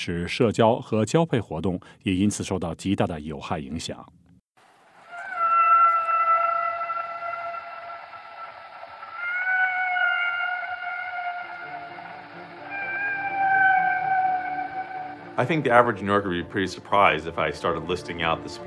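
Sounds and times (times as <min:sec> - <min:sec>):
speech: 0:00.0 - 0:04.2, 0:15.4 - 0:18.6
humpback whale song: 0:04.7 - 0:15.9.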